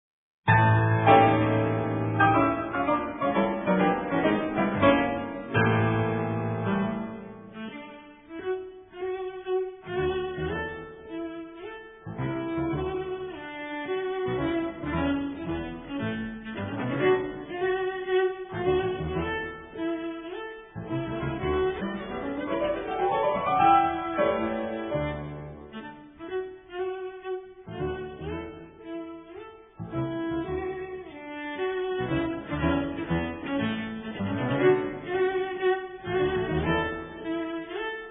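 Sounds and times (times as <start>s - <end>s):
cello: 0.5s - 38.0s
piano: 0.5s - 38.0s.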